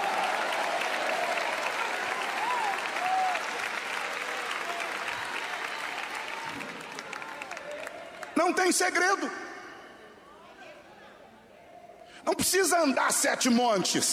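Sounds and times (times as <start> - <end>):
audience applauding: 0.0 - 9.2
speech: 8.4 - 9.4, 12.3 - 14.1.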